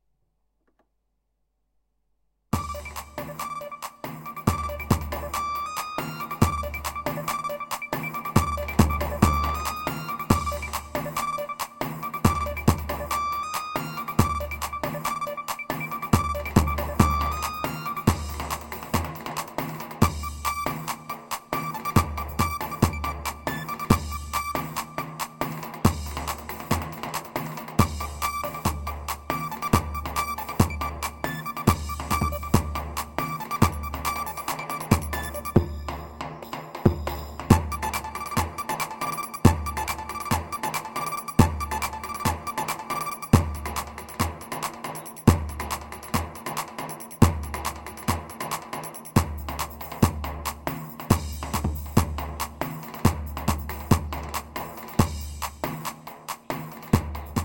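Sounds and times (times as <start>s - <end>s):
PA-500 Roman rhythm pattern: 2.6s - 57.4s.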